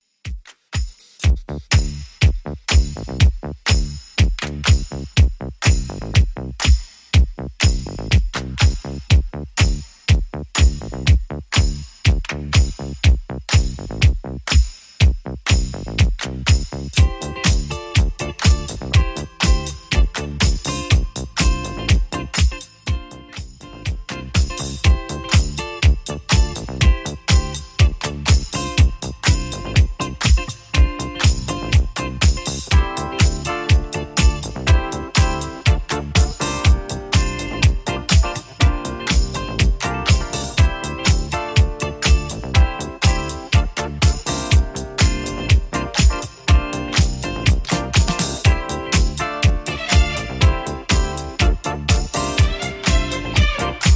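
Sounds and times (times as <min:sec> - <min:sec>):
70s Redrum drum beat: 0:00.2 - 0:53.9.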